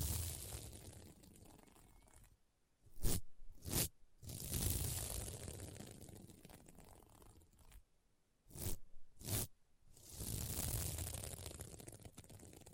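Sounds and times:
scratching across a sequin mermaid pillow: 0:00.0 - 0:01.0, 0:02.9 - 0:06.1, 0:08.5 - 0:12.7.

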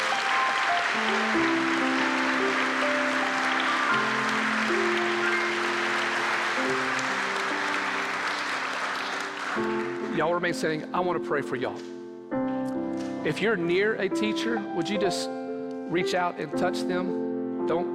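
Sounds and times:
audience applause for teachers: 0:00.0 - 0:10.4
speech: 0:10.2 - 0:12.0, 0:13.2 - 0:17.9.

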